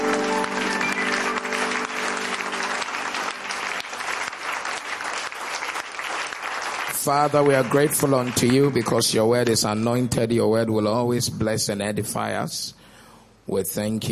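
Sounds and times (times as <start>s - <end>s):
audience clapping: 0.0s - 9.9s
speech: 7.0s - 12.8s, 13.5s - 14.1s.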